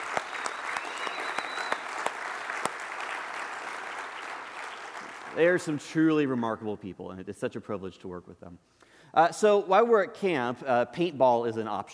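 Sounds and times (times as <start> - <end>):
crowd applause: 0.0 - 5.4
faint whistle-like tone: 0.2 - 1.8
speech: 5.4 - 11.9.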